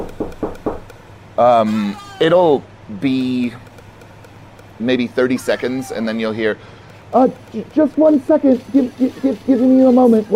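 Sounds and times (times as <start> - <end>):
knocking on the door of a room: 0.0 - 0.8
speech: 1.4 - 3.6, 4.8 - 10.3.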